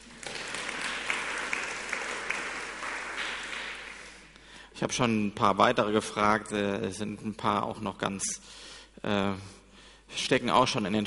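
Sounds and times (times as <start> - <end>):
applause for the reader: 0.0 - 4.4
speech: 4.8 - 11.0.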